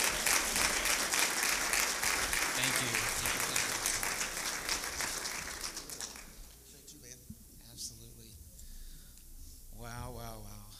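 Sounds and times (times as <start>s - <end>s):
audience applauding to welcome a guest speaker at a North Carolina gathering: 0.0s - 6.6s.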